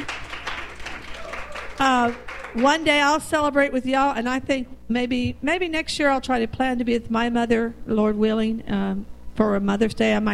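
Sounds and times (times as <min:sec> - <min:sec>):
audience at a Mother's Day gathering clapping for guests: 0:00.0 - 0:03.1
speech: 0:01.8 - 0:10.3.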